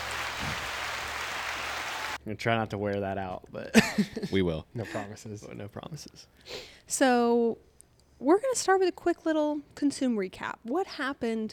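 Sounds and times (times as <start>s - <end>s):
applause: 0.0s - 2.2s
speech: 2.2s - 11.5s.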